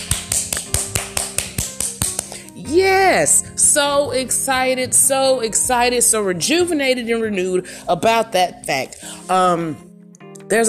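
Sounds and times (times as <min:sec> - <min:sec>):
person clapping hands: 0:00.0 - 0:02.6
speech: 0:02.7 - 0:09.9, 0:10.5 - 0:10.6.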